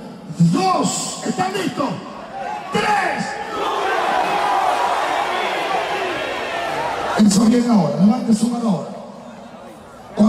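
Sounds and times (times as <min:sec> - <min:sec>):
speech: 0:00.4 - 0:02.1, 0:07.2 - 0:09.0
crowd shouting loudly together: 0:02.2 - 0:07.2.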